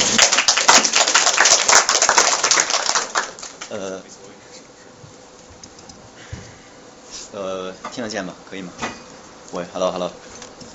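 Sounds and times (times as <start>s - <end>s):
audience applause: 0.0s - 3.8s
speech: 7.4s - 10.3s.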